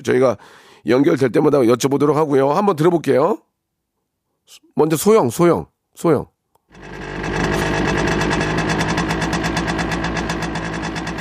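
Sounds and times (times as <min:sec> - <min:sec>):
speech: 0:00.0 - 0:03.5, 0:04.5 - 0:07.0
small 52cc motorcycle engine starting and running: 0:06.7 - 0:11.1.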